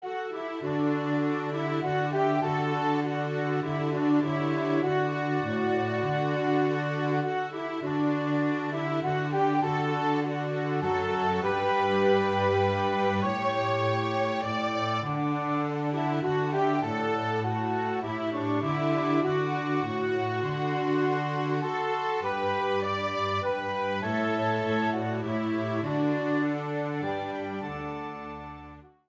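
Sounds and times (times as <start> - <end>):
Scottish waltz music: 0.0 - 29.0.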